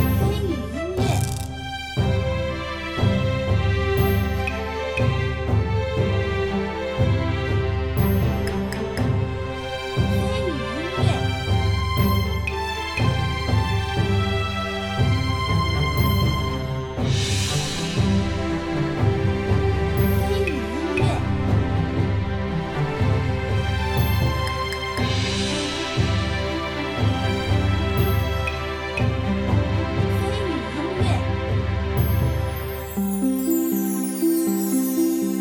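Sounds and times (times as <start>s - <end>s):
map background music: 0.0s - 35.3s.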